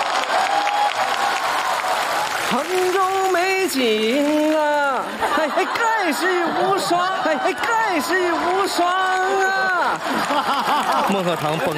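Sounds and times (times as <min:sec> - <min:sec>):
audience applause welcoming a crosstalk performer: 0:00.0 - 0:11.7
speech: 0:03.7 - 0:11.7
laughter: 0:04.4 - 0:11.7.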